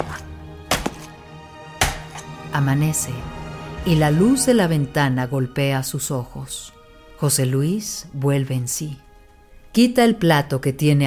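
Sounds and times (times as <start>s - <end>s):
heavy chopping as a body is hacked into pieces: 0.7s - 1.1s, 1.8s - 2.2s
speech: 2.5s - 9.0s, 9.8s - 11.0s.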